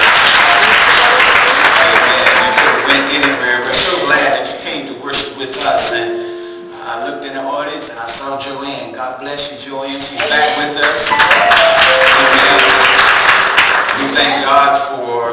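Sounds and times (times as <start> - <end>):
audience applauding a visitor: 0.0 - 4.0, 10.2 - 14.7
people talking: 0.3 - 13.1, 13.9 - 15.3.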